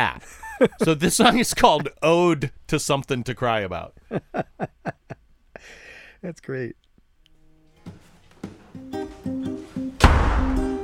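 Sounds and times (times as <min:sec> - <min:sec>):
speech: 0:00.0 - 0:06.8
laughter: 0:00.2 - 0:02.0, 0:04.1 - 0:05.2
footsteps going upstairs: 0:07.8 - 0:10.1
doors slamming: 0:10.0 - 0:10.8.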